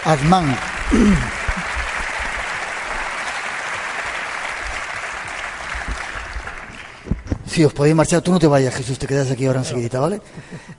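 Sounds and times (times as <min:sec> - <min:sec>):
speech: 0:00.0 - 0:01.4, 0:07.6 - 0:10.7
crowd applauding: 0:00.0 - 0:07.3.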